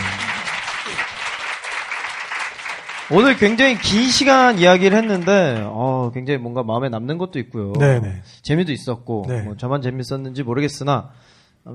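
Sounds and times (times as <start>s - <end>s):
voice murmuring: 0.0s - 1.0s, 7.8s - 8.3s
group clapping: 0.0s - 6.3s
speech: 3.1s - 11.7s.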